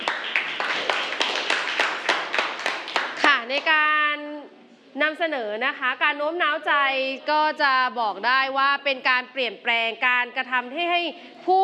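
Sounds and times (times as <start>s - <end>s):
audience applause: 0.0s - 3.4s
speech: 3.5s - 4.1s, 5.0s - 11.6s.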